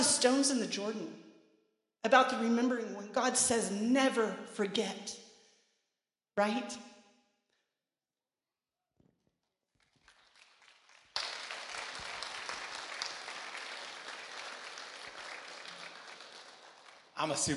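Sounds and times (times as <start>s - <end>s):
speech: 0.2s - 1.3s, 2.0s - 5.2s, 6.4s - 6.9s, 17.2s - 17.5s
audience applauding: 9.8s - 17.5s.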